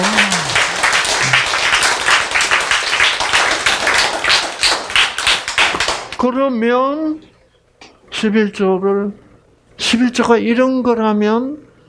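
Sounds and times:
crowd clapping: 0.0s - 6.2s
speech: 6.2s - 7.3s, 8.2s - 9.2s, 9.8s - 11.7s.

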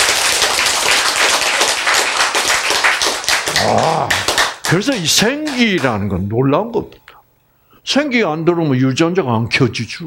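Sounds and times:
audience applause: 0.0s - 6.0s
speech: 4.7s - 7.0s, 7.9s - 10.0s.

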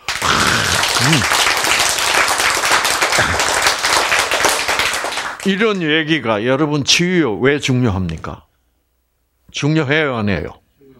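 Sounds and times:
audience applause: 0.0s - 5.6s
speech: 1.1s - 1.4s, 5.5s - 8.5s, 9.5s - 10.6s.

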